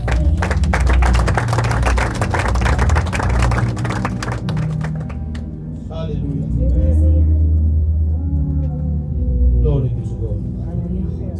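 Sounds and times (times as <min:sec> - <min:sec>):
audience clapping: 0:00.0 - 0:05.6
low sustained musical drone: 0:00.0 - 0:11.3.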